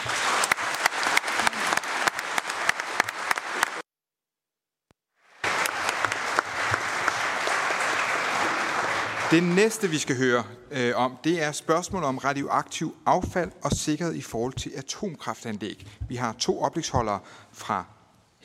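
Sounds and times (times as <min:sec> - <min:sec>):
audience applause: 0:00.0 - 0:03.8, 0:05.3 - 0:10.2
speech: 0:09.3 - 0:18.4.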